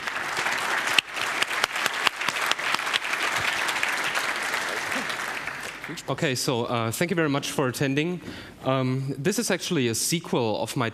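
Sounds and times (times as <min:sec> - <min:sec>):
warm audience applause: 0:00.0 - 0:06.1
speech: 0:05.9 - 0:10.9.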